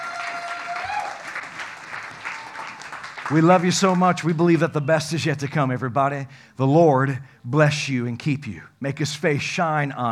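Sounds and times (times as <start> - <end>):
audience applause: 0.0 - 4.4
speech: 3.3 - 10.1.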